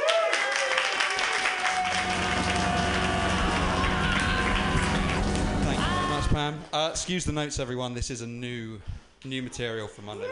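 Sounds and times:
audience applause: 0:00.0 - 0:06.4
speech: 0:06.8 - 0:10.3.

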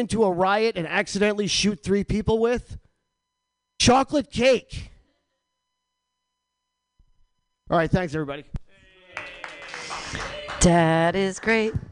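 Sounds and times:
speech: 0:00.0 - 0:02.8, 0:03.8 - 0:04.9, 0:07.7 - 0:08.6, 0:10.6 - 0:11.9
audience clapping: 0:09.0 - 0:11.9.

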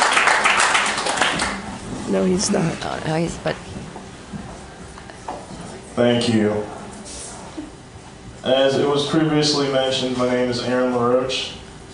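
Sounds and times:
crowd clapping: 0:00.0 - 0:01.9
speech: 0:02.1 - 0:03.8, 0:06.0 - 0:06.8, 0:08.4 - 0:11.6.

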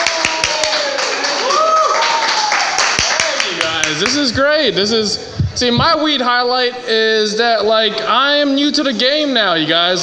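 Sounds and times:
audience applause at a live show: 0:00.0 - 0:04.3
speech: 0:04.0 - 0:10.0.

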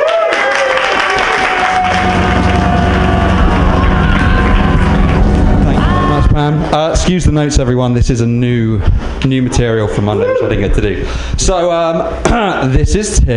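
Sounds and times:
audience applause: 0:00.0 - 0:06.3
sustained tonal sounds: 0:01.5 - 0:07.8
speech: 0:07.1 - 0:13.3.

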